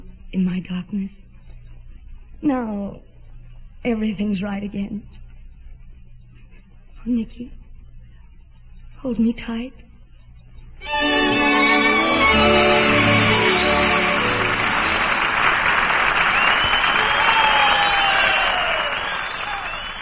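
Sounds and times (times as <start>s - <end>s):
speech: 0.3s - 1.3s, 2.4s - 3.1s, 3.8s - 5.2s, 7.0s - 7.6s, 9.0s - 9.8s, 10.9s - 12.7s
audience applause at final curtain: 10.9s - 19.9s.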